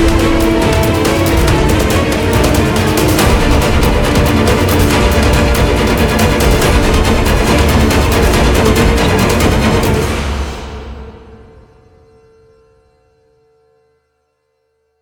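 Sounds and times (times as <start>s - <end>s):
fast action chase music: 0.0s - 11.6s.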